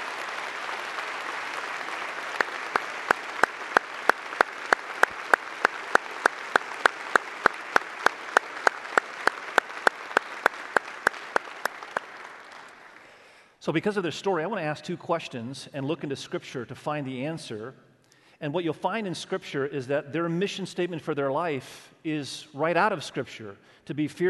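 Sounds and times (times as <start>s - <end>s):
sharp rhythmic clap: 0.0s - 13.1s
church audience applause: 0.0s - 13.4s
speech: 13.6s - 24.2s.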